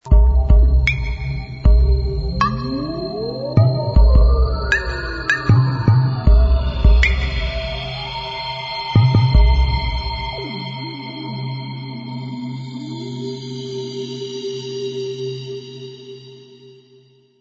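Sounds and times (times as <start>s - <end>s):
theme music: 0.0s - 11.4s.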